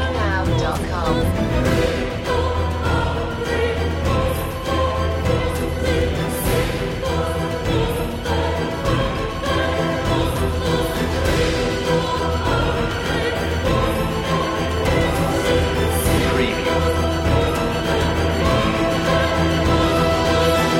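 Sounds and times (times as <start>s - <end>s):
choir singing: 0.0s - 20.7s.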